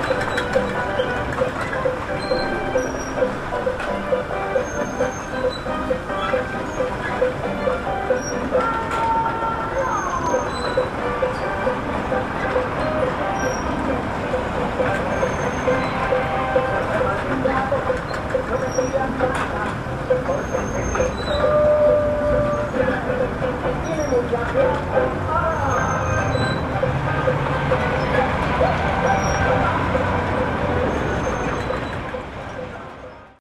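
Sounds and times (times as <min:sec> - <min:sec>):
carousel in a plaza: 0:00.0 - 0:33.3.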